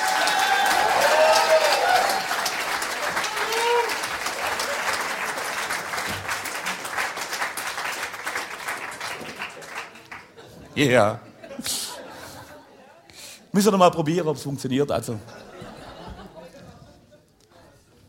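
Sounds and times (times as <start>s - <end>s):
audience applause: 0.0s - 10.5s
laughter: 10.2s - 13.0s, 15.2s - 17.4s
speech: 10.8s - 11.7s, 13.5s - 15.3s.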